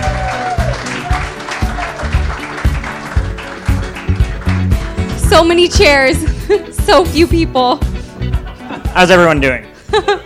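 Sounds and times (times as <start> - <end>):
audience clapping and cheering: 0.0 - 5.9
speech: 5.3 - 7.9, 9.0 - 10.2.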